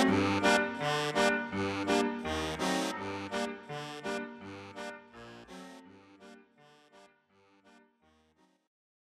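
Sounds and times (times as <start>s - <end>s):
slowed funk music: 0.0s - 4.9s.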